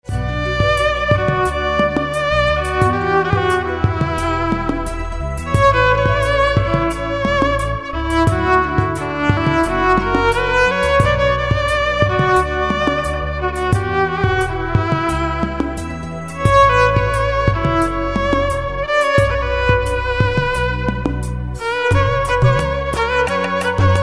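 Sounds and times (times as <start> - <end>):
violin: 0.0 - 24.0.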